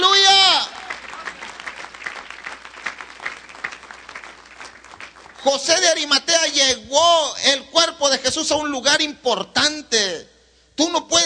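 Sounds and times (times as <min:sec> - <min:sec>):
audience clapping: 0:00.6 - 0:06.1
speech: 0:05.4 - 0:11.2.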